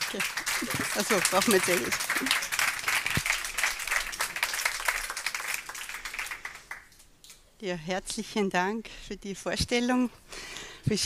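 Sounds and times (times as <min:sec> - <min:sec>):
audience applause: 0:00.0 - 0:06.9
speech: 0:00.1 - 0:02.6, 0:07.6 - 0:11.0.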